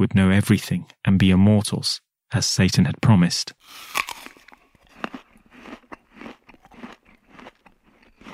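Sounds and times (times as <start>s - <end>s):
speech: 0.0s - 4.0s
biting into a piece of fruit: 3.6s - 8.3s.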